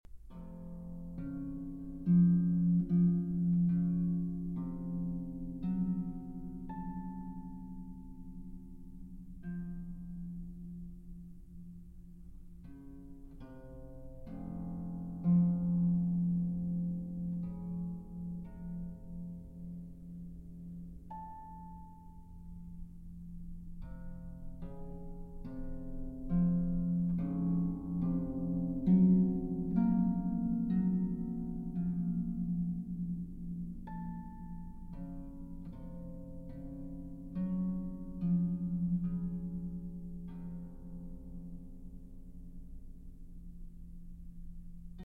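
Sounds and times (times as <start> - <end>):
harp sonata slow movement: 0.1 - 45.0.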